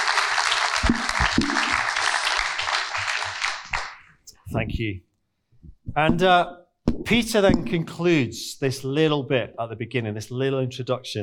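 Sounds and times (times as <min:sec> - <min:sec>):
audience applause: 0:00.0 - 0:04.2
speech: 0:04.6 - 0:05.1, 0:05.9 - 0:11.2.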